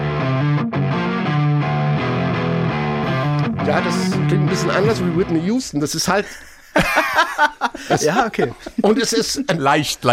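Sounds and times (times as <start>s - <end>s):
heavily distorted electric guitar riff with power chords: 0.0s - 5.5s
speech: 3.7s - 10.1s
laughter: 6.2s - 9.9s.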